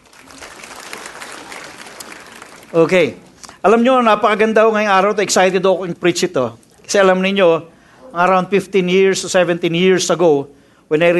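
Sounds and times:
congregation applauding during a church worship service: 0.0 - 3.6
speech: 2.7 - 11.1.

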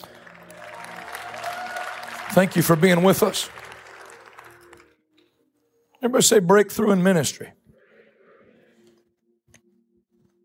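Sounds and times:
audience clapping: 0.0 - 5.0
speech: 2.3 - 3.6, 6.0 - 7.6.

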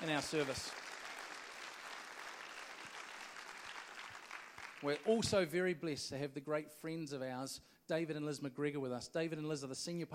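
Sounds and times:
speech: 0.0 - 0.9, 4.8 - 10.1
congregation applause at a church service: 0.0 - 5.4.

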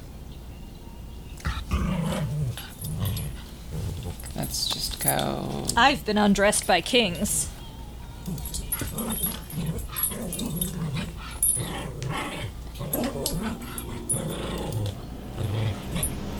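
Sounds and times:
pet dog growling and snarling while attacking: 1.4 - 6.0, 8.2 - 16.3
speech: 4.5 - 7.5.

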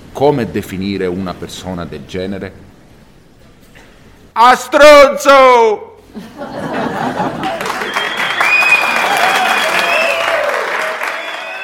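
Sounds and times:
speech: 0.2 - 2.7, 4.4 - 7.5
laughter: 6.1 - 8.4
audience applause: 7.0 - 11.6.

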